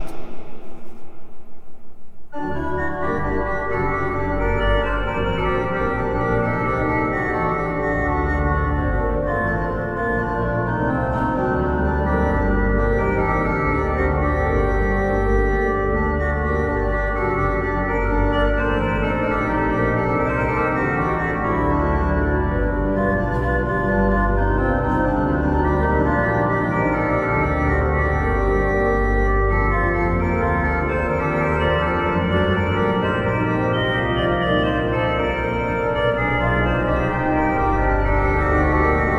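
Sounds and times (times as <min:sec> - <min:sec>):
pipe organ: 0:02.3 - 0:39.1.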